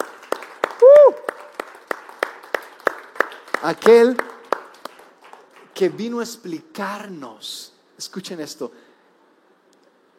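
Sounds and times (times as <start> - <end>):
audience clapping in rhythm: 0.0 - 6.3
speech: 3.6 - 4.3, 5.8 - 8.9.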